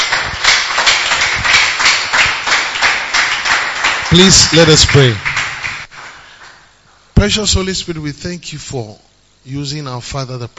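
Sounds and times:
audience clapping: 0.0s - 6.7s
speech: 4.1s - 5.3s, 7.2s - 10.5s.

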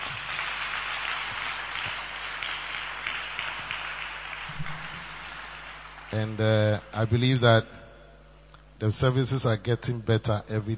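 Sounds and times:
audience clapping: 0.0s - 7.4s
speech: 6.1s - 7.8s, 8.8s - 10.7s.

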